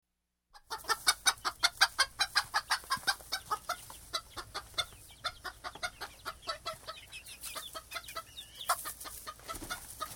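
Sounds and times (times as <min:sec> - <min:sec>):
chickens clucking: 0:00.5 - 0:10.1.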